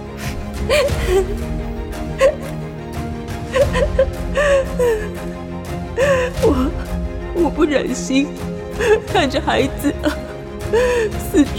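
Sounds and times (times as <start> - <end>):
steady low background: 0.0 - 11.5
woman, Hagar from the Bible story, crying beneath a small tree: 0.6 - 2.6, 3.5 - 7.7, 8.7 - 11.5
speech: 0.7 - 1.6, 3.7 - 5.3, 6.0 - 6.8, 7.4 - 11.5.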